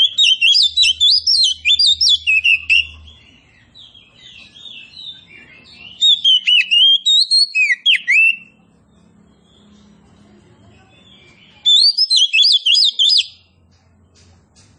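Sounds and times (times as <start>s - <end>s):
Oriental magpie-robin of the form kacer poci singing loud varied whistles and trills: 0.0s - 8.6s, 10.9s - 13.5s.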